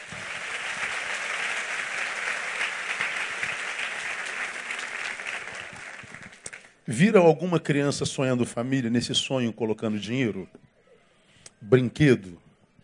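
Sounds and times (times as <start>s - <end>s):
audience applause: 0.0s - 6.7s
speech: 6.9s - 10.6s, 11.7s - 12.4s.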